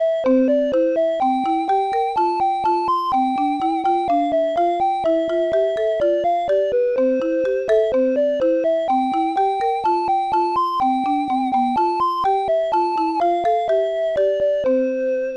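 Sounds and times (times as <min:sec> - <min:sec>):
music: 0:00.0 - 0:15.3.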